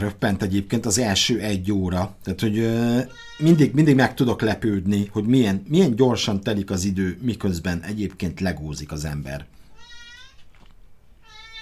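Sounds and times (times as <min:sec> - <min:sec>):
speech: 0:00.0 - 0:09.6
cat meowing: 0:03.1 - 0:03.6, 0:09.7 - 0:10.5, 0:11.2 - 0:11.6.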